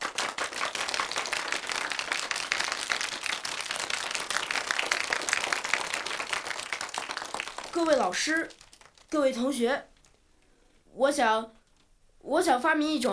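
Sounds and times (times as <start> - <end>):
classroom applause: 0.0 - 9.5
speech: 7.8 - 9.9, 11.0 - 11.6, 12.2 - 13.1.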